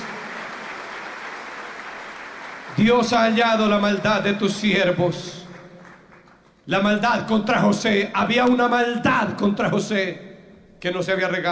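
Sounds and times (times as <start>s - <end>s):
audience applause: 0.0s - 4.0s, 5.2s - 6.6s
speech: 2.7s - 5.4s, 6.7s - 11.5s.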